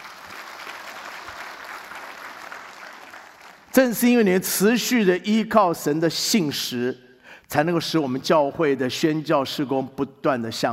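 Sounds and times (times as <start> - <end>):
audience applauding: 0.0 - 3.7
speech: 3.8 - 10.7.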